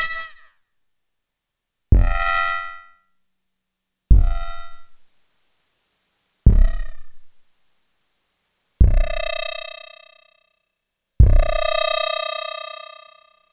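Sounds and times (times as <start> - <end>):
distorted kick drum with feedback: 1.9 - 2.9, 4.1 - 5.1, 6.4 - 7.5, 8.8 - 10.0, 11.2 - 12.7.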